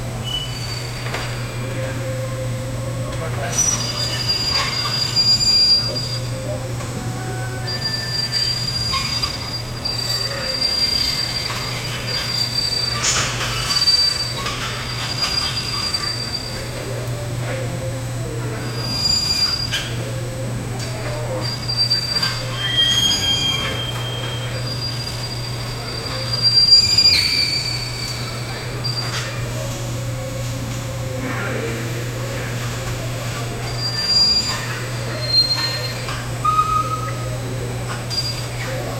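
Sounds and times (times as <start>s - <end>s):
bustling store ambience: 0.0s - 38.9s.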